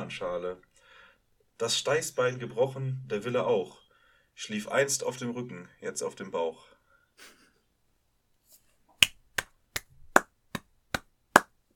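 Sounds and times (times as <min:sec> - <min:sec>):
speech: 0:00.1 - 0:00.7, 0:01.6 - 0:03.8, 0:04.4 - 0:07.4
sharp hand claps: 0:09.0 - 0:11.6.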